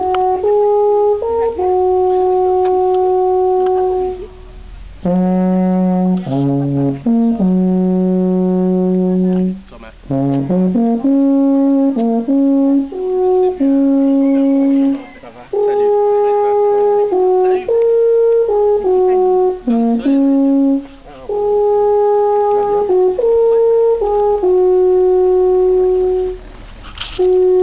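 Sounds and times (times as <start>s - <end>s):
alphorn: 0.0s - 27.6s.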